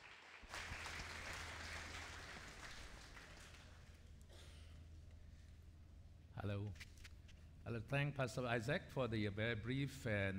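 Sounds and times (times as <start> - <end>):
audience applause welcoming a guest speaker at a church retreat: 0.0 - 3.8
speech: 6.4 - 6.9, 7.6 - 10.3.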